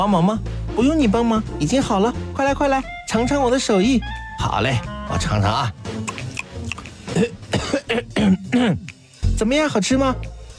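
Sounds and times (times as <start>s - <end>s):
speech: 0.0s - 6.1s, 7.1s - 8.8s, 9.4s - 10.3s
throat clearing: 6.1s - 9.0s
person coughing after tasting a home-cooked dish: 7.1s - 8.9s.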